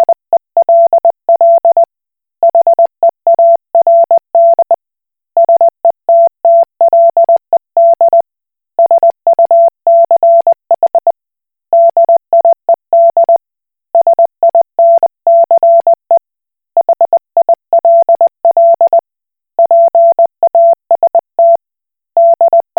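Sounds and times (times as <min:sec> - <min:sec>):
Koch Morse code beeps: 0:00.0 - 0:01.9, 0:02.5 - 0:04.8, 0:05.4 - 0:08.2, 0:08.8 - 0:11.1, 0:11.8 - 0:13.4, 0:14.0 - 0:16.0, 0:16.8 - 0:19.0, 0:19.6 - 0:21.6, 0:22.2 - 0:22.7.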